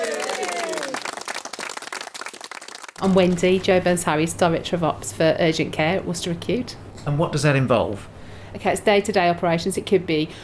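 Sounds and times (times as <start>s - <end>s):
hospital staff at Worcester Acute clapping: 0.0s - 3.8s
speech: 3.0s - 10.4s.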